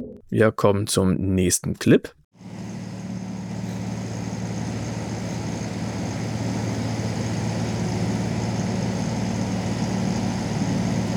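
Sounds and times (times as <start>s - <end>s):
speech: 0.4s - 2.2s
stationary truck engine idling: 2.4s - 11.1s.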